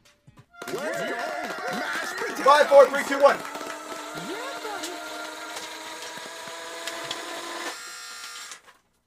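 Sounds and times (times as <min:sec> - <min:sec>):
laughter: 0:00.6 - 0:05.5
speech: 0:00.7 - 0:01.2, 0:02.4 - 0:03.5
money gun spitting out bills: 0:02.2 - 0:08.8.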